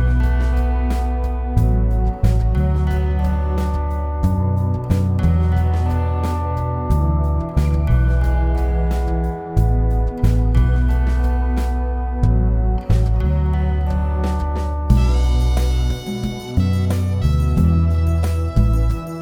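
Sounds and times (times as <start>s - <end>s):
instrumental music: 0.0s - 19.2s.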